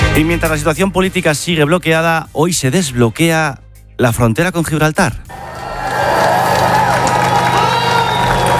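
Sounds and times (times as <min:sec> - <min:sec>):
speech: 0:00.2 - 0:05.4
applause at the Gibraltar border fence: 0:05.3 - 0:08.5.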